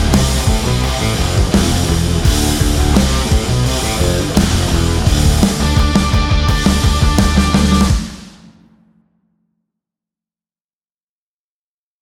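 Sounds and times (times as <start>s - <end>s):
hard rock music: 0.0s - 8.8s.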